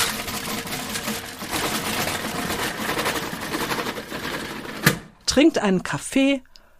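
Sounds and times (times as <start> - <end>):
roller shutter of a shop being opened: 0.0 - 5.1
speech: 5.4 - 6.5.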